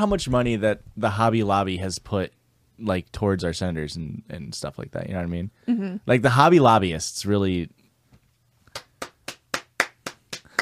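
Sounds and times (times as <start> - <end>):
speech: 0.0 - 7.8
hand claps: 8.7 - 10.6.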